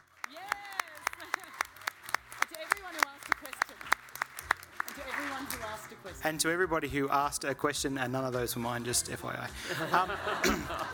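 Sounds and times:
audience applause: 0.0 - 5.8
laughter: 1.1 - 1.8, 9.6 - 10.9
speech: 5.4 - 10.9.

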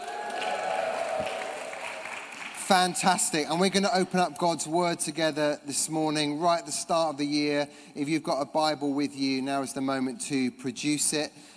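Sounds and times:
applause: 0.0 - 3.4
audience cheering: 0.0 - 3.5
speech: 2.7 - 11.5.

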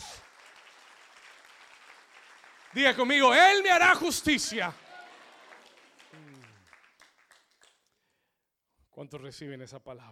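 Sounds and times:
crowd applause: 0.0 - 7.8
speech: 2.7 - 4.8, 9.0 - 10.0.

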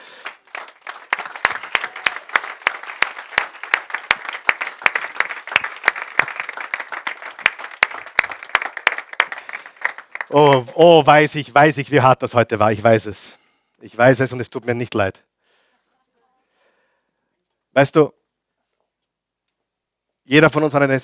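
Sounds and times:
audience applauding: 0.0 - 11.2
speech: 10.3 - 15.2, 17.8 - 18.2, 20.3 - 21.0.

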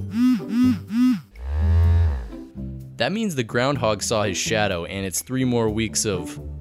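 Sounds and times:
custom phone vibration buzz pattern: 0.0 - 2.5
speech: 3.0 - 6.6.

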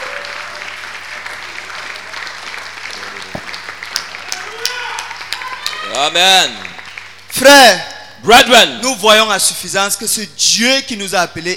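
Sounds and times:
church congregation clapping together for the Lord: 0.0 - 5.9, 6.5 - 7.3
speech: 6.0 - 6.6, 7.3 - 11.5.

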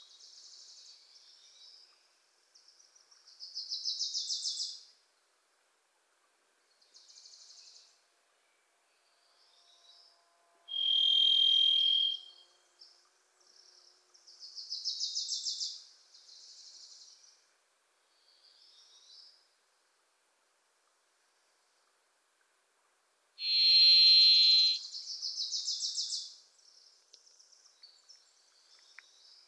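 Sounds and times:
varied thrush buzzy whistled song: 10.7 - 12.3, 23.5 - 24.8.

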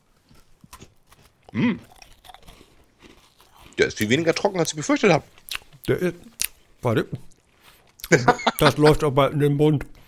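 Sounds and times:
crunchy snack being bitten and chewed: 0.0 - 6.7
speech: 1.5 - 2.0, 3.8 - 7.3, 8.1 - 10.0
laughter: 8.1 - 9.0.

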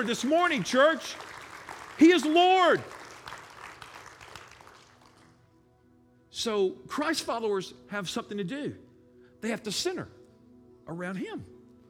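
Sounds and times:
speech: 0.0 - 1.4, 2.0 - 3.0, 6.4 - 10.2, 10.9 - 11.5
audience applause: 0.0 - 5.3.

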